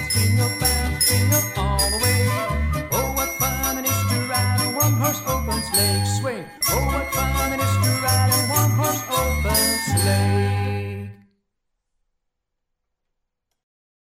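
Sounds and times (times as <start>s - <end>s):
person singing a Christmas song: 0.0s - 11.2s.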